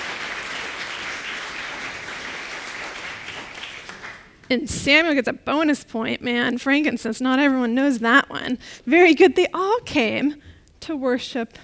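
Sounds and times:
applause: 0.0s - 4.5s
speech: 4.5s - 11.6s.

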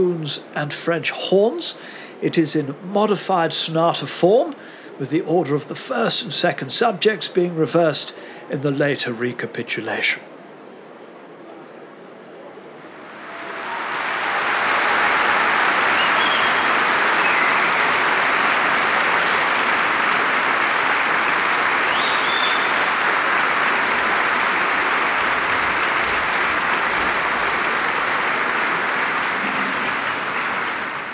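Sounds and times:
speech: 0.0s - 10.3s
concert audience applause: 13.0s - 31.1s.

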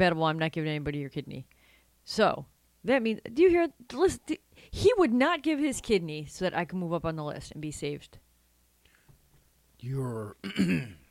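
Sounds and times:
speech: 0.0s - 8.2s, 9.8s - 11.0s
person clearing throat: 10.4s - 11.1s.

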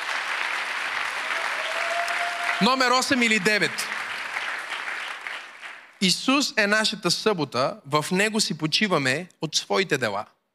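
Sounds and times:
church congregation applauding: 0.0s - 6.0s
speech: 2.6s - 3.9s, 6.0s - 10.4s.

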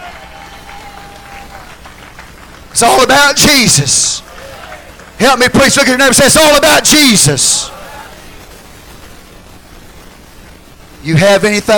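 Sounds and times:
audience applause: 0.0s - 6.0s
speech: 2.8s - 4.3s, 5.2s - 7.8s, 11.0s - 11.7s.

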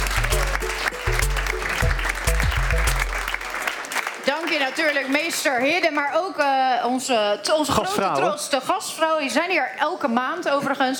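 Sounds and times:
audience applause: 0.0s - 5.5s
speech: 4.7s - 10.9s.

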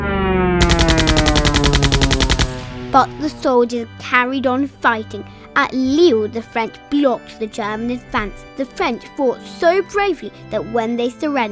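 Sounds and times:
machine gun fire from attacking German planes: 0.6s - 3.5s
speech: 2.9s - 11.4s.

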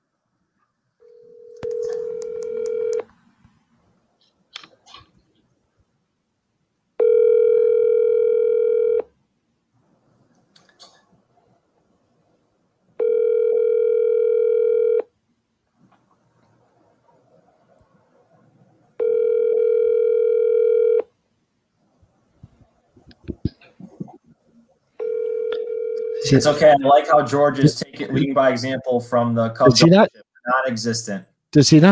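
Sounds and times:
ringback tone of an outgoing telephone call to a friend: 1.0s - 3.0s, 7.0s - 9.0s, 13.0s - 15.0s, 19.0s - 21.1s, 25.0s - 26.4s
speech: 26.3s - 31.8s.

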